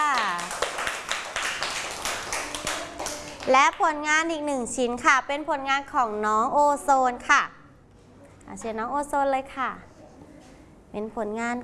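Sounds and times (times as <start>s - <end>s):
hands clapping: 0.0s - 3.9s
speech: 3.5s - 7.6s, 8.5s - 9.9s, 10.9s - 11.6s.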